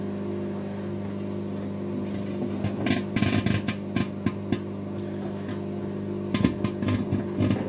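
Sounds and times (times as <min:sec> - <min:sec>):
low electrical hum with harmonic buzz: 0:00.0 - 0:07.6.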